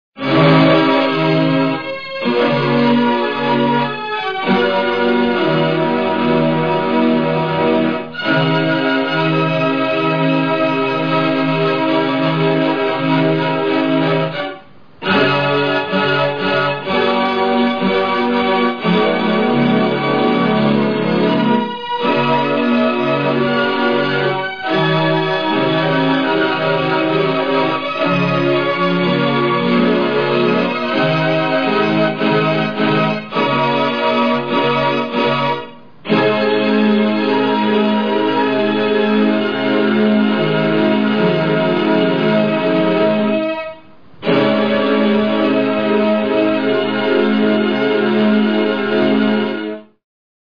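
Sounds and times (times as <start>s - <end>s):
organ: 0.2s - 50.0s.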